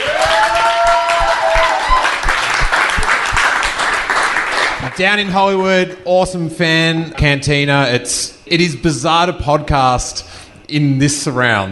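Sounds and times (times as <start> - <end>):
audience applause: 0.0 - 5.0
speech: 5.0 - 11.7.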